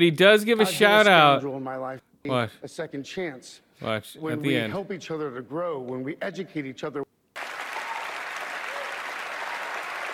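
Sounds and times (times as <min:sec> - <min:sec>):
speech: 0:00.0 - 0:07.1
audience applause: 0:07.4 - 0:10.1.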